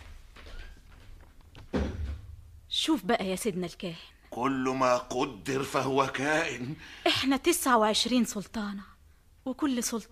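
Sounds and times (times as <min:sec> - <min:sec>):
door being closed: 0:01.6 - 0:02.4
speech: 0:02.8 - 0:08.9, 0:09.5 - 0:10.1.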